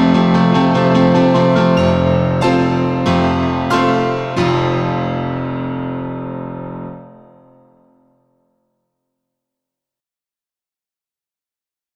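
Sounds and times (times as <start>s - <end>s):
waltz music: 0.0s - 7.3s.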